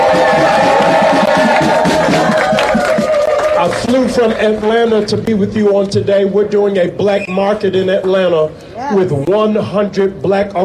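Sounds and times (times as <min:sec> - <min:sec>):
crowd cheering: 0:00.0 - 0:05.8
speech: 0:04.2 - 0:10.6.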